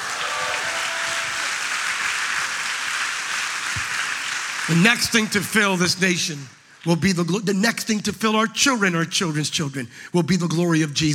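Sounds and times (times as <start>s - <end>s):
audience clapping: 0.0s - 7.0s
speech: 4.7s - 11.1s.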